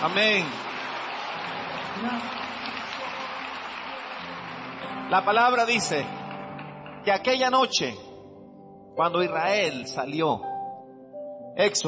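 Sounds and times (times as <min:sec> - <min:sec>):
speech: 0:00.0 - 0:00.7, 0:02.0 - 0:02.6, 0:05.1 - 0:06.2, 0:07.0 - 0:08.0, 0:09.0 - 0:10.5, 0:11.6 - 0:11.8
applause: 0:00.0 - 0:07.8.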